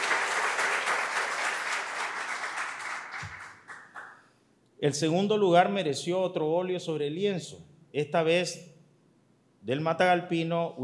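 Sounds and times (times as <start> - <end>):
audience applause: 0.0 - 4.2
speech: 4.8 - 8.7, 9.6 - 10.8.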